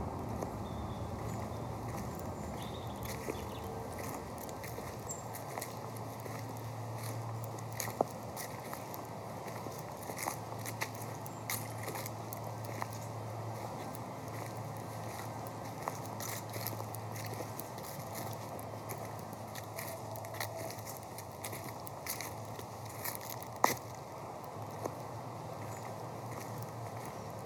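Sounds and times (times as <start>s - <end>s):
walk soundscape: 0.1s - 27.4s.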